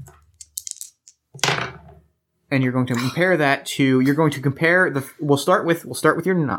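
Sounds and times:
challenge dice rolling: 0:00.0 - 0:01.8
speech: 0:02.5 - 0:06.5.

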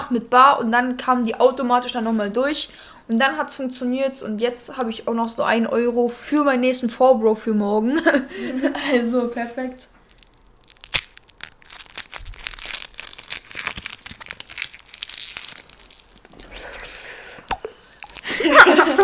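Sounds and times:
speech: 0:00.1 - 0:09.9
rustling: 0:09.6 - 0:17.2, 0:18.0 - 0:19.0
small chocolate bonbons being chewed and crunched: 0:09.6 - 0:19.0
laughter: 0:18.3 - 0:19.0.

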